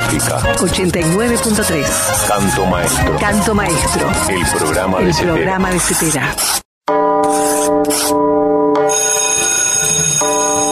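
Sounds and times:
speech: 0.1 - 7.0
bell ringing: 6.9 - 10.6.

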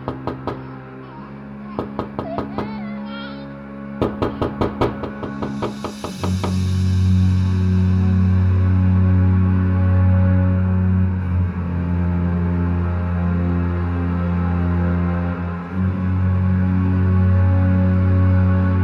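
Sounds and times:
soft tapping on a closed door: 0.0 - 0.8, 1.8 - 2.9, 4.0 - 6.6
low humming drone: 0.0 - 18.8.

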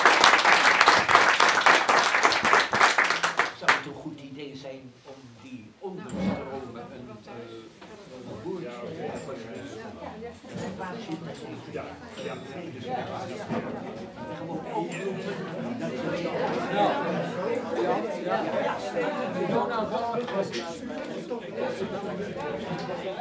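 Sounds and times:
audience applauding the panel at a debate on European security: 0.0 - 3.8
people talking: 0.0 - 23.1.

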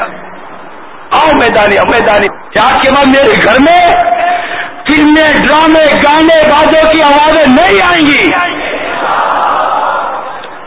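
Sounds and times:
speech: 1.4 - 4.2, 4.9 - 8.5
large crowd at a religious gathering shouting a religious slogan: 8.0 - 10.6.

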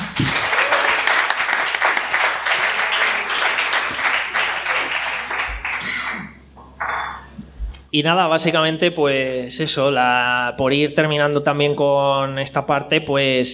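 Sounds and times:
crowd applause: 0.0 - 7.2
speech: 0.2 - 0.5, 7.9 - 13.5.

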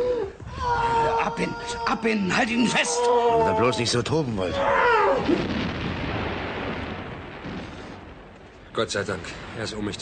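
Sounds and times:
speech: 1.4 - 5.7, 8.8 - 10.0
aerial bombs exploding on artillery battery: 5.1 - 10.0.

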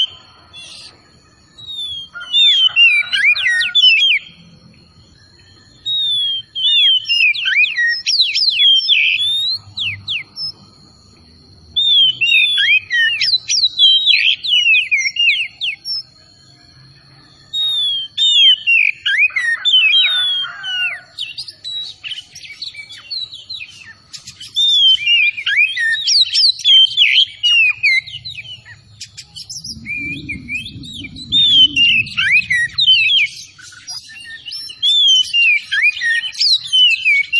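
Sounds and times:
Oriental magpie-robin singing: 1.6 - 4.4, 5.2 - 10.6, 11.8 - 16.2, 17.6 - 37.3
low rumbling noise: 27.9 - 34.2.

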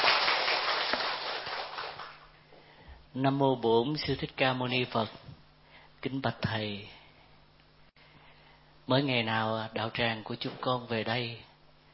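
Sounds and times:
audience applause: 0.0 - 2.3
speech: 3.2 - 5.3, 6.0 - 7.0, 8.9 - 11.5.

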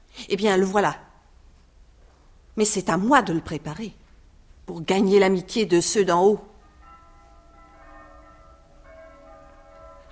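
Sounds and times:
speech: 0.3 - 1.1, 2.6 - 4.0, 4.7 - 6.5
church bells ringing: 6.5 - 10.0.

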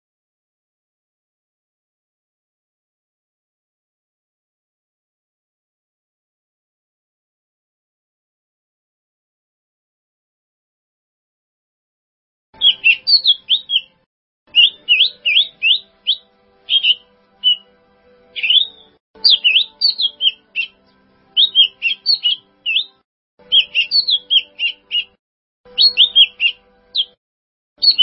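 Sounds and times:
bird song: 12.6 - 27.2, 27.8 - 28.0.

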